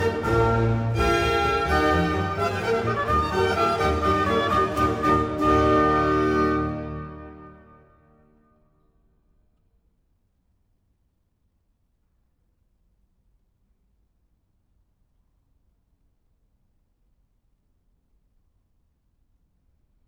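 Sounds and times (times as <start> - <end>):
symphony movement in E-flat major, Presto: 0.0 - 8.0.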